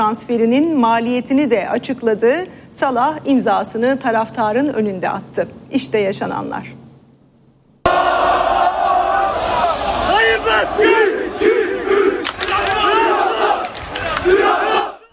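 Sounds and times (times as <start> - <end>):
speech: 0.0 - 6.8
huge crowd of football fans chanting and roaring: 7.9 - 15.1.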